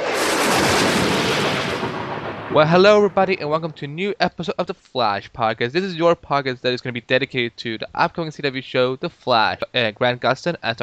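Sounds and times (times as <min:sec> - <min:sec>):
lightning strike sound effect: 0:00.0 - 0:03.8
speech: 0:02.5 - 0:10.8.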